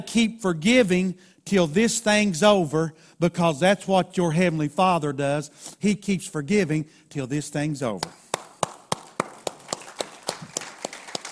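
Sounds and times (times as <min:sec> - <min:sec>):
speech: 0:00.0 - 0:08.2
single person clapping: 0:08.0 - 0:11.3.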